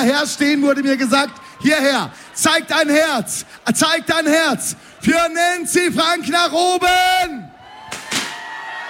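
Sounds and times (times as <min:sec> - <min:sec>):
speech: 0:00.0 - 0:07.5
confetti cannons firing: 0:07.9 - 0:08.5.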